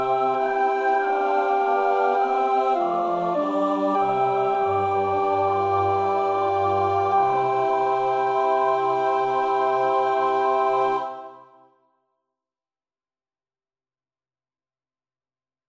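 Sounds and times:
alto choir part practice singing: 0:00.0 - 0:11.6.

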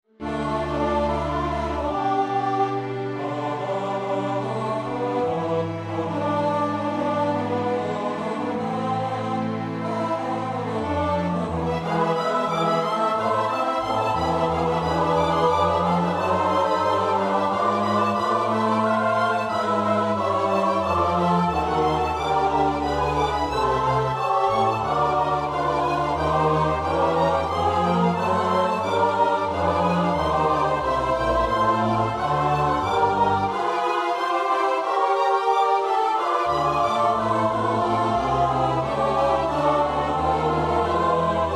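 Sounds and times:
soprano alto tenor bass voices: 0:00.2 - 0:41.5.

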